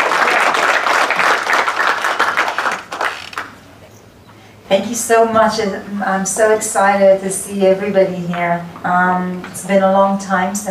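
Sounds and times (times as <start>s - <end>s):
audience applause: 0.0s - 3.6s
speech: 4.7s - 10.6s.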